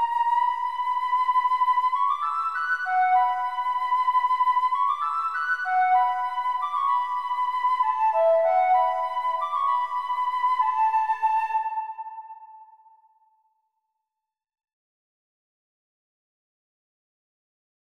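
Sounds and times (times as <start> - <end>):
flute: 0.0 - 13.3.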